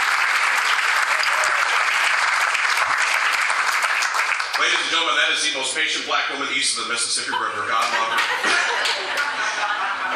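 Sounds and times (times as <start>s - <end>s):
audience applause: 0.0s - 5.0s, 7.8s - 10.1s
speech: 4.6s - 10.1s
laughter: 7.2s - 10.1s.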